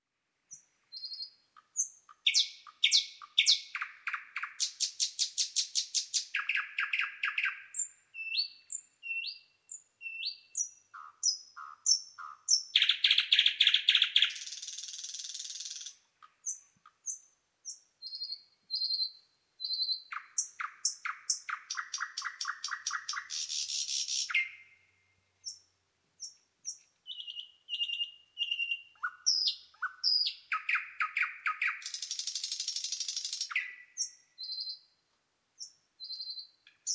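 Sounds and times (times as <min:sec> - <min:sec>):
nightingale singing: 0:00.4 - 0:35.0, 0:35.6 - 0:36.9.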